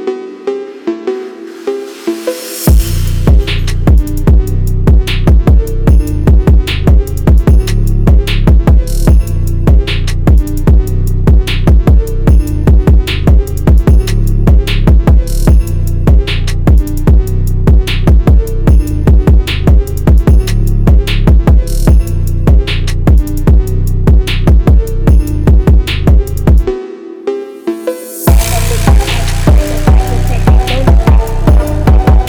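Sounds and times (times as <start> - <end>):
Christmas phonk music: 0.3 - 32.2.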